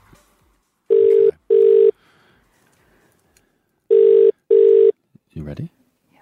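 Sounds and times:
telephone ringing tone on an outgoing call: 0.9s - 1.9s, 3.9s - 4.9s
speech: 5.6s - 5.8s.

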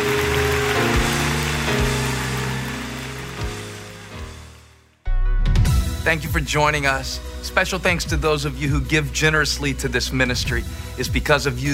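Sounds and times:
crowd clapping: 0.0s - 4.9s
speech: 6.1s - 11.7s.

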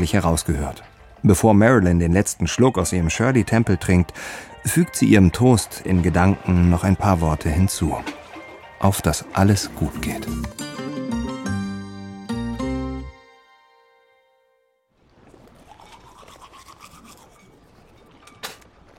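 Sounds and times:
speech: 0.0s - 8.2s, 8.8s - 10.6s
sustained musical chords: 9.5s - 14.8s
teeth brushed with a toothbrush: 15.7s - 18.0s.

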